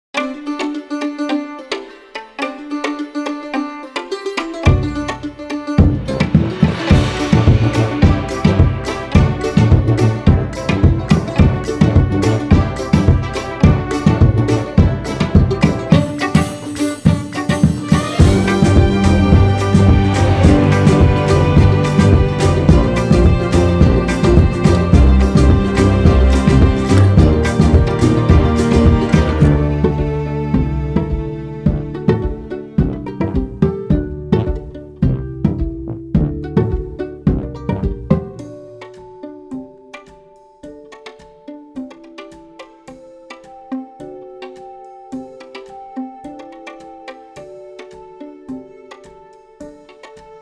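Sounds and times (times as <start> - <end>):
driving Slavic folk hybrid music: 0.2 - 50.4.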